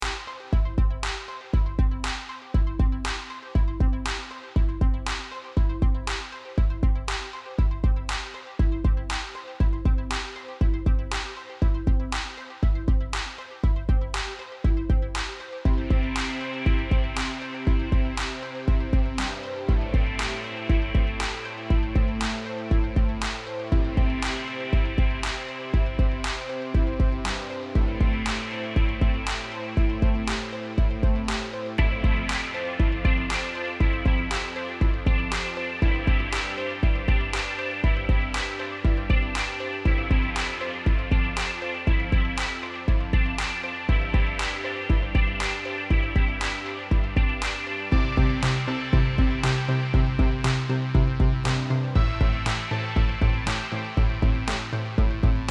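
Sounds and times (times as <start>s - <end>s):
synth: 0.0s - 55.4s.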